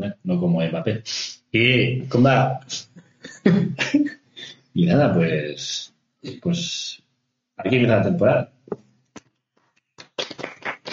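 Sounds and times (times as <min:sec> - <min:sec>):
speech: 0:00.3 - 0:07.0, 0:07.6 - 0:08.8
laughter: 0:02.1 - 0:05.5
applause: 0:10.0 - 0:10.9.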